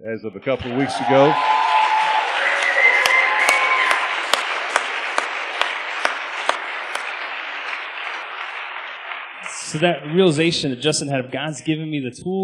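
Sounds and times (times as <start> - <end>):
speech: 0.0 - 1.8, 9.7 - 12.4
audience applause: 0.6 - 11.0.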